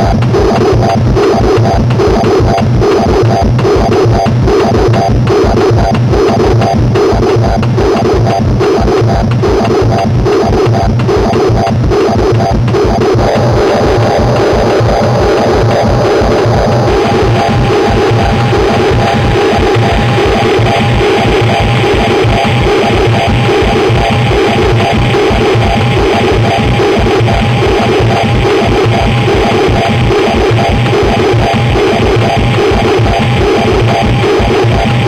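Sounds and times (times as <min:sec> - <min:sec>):
inharmonic overtones: 0:00.2 - 0:35.0.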